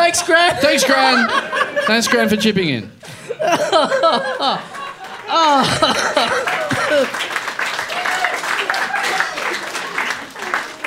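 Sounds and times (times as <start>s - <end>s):
laughter: 0.0s - 10.8s
speech: 0.1s - 4.8s, 5.4s - 6.2s
lukewarm round of applause from a crowd: 4.2s - 10.8s.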